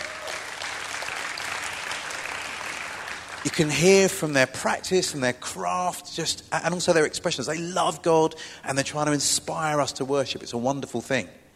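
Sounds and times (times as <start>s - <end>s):
round of applause for worship band: 0.0s - 3.8s
speech: 3.4s - 11.4s.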